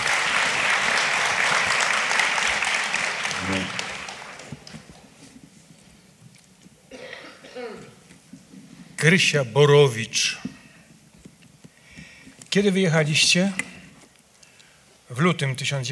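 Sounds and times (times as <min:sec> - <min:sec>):
crowd applauding: 0:00.0 - 0:05.0
throat clearing: 0:06.9 - 0:08.0
speech: 0:09.0 - 0:10.5, 0:12.5 - 0:13.7, 0:15.2 - 0:15.8.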